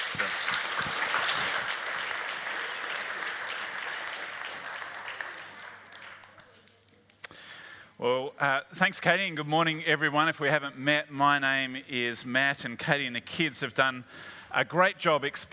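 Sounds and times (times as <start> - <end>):
audience clapping: 0.0 - 7.3
speech: 8.0 - 15.5.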